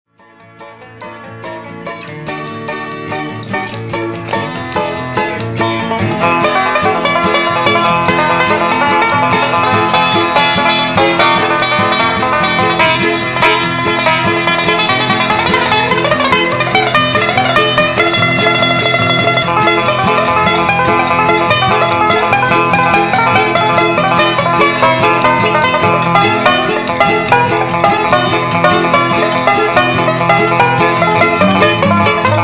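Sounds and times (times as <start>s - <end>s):
banjo solo: 0.1s - 32.4s.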